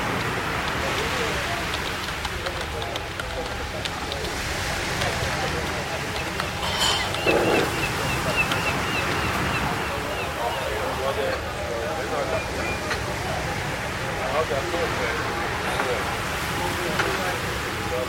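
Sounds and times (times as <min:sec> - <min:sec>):
seaside café overlapping chatter: 0:00.0 - 0:18.0
cup or dish clink: 0:06.6 - 0:07.9.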